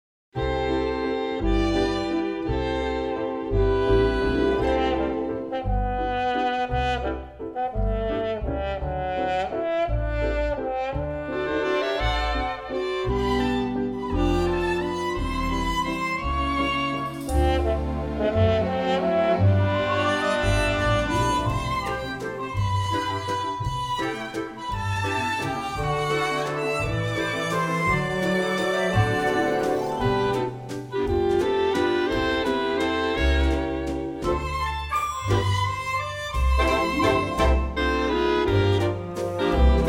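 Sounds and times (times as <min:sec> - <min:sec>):
big band waltz menu music: 0:00.4 - 0:39.8.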